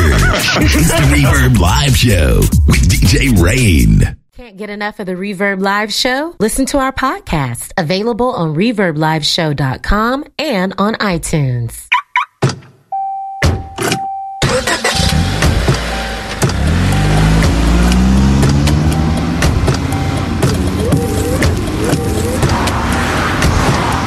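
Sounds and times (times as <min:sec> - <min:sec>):
laughter: 0:00.0 - 0:01.8
speech: 0:01.2 - 0:11.8
car driving on road: 0:14.0 - 0:24.0.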